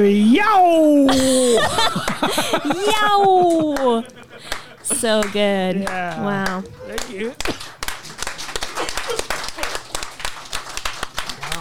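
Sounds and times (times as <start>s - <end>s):
speech: 0.0s - 7.8s
laughter: 1.1s - 7.6s, 8.6s - 10.0s
audience slow clap: 3.5s - 11.5s.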